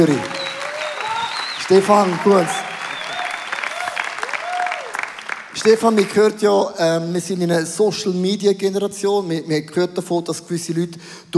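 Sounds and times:
speech: 0:00.0 - 0:00.4, 0:01.7 - 0:02.6, 0:05.6 - 0:11.3
audience applause: 0:00.0 - 0:06.3.

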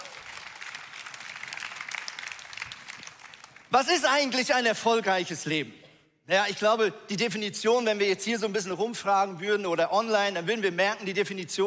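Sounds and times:
audience applause: 0:00.0 - 0:03.7
speech: 0:03.7 - 0:11.6.

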